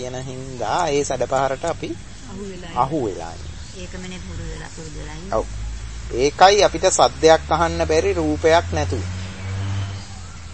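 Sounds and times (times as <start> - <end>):
speech: 0.0 - 9.2
bus engine rumbling: 0.0 - 10.5.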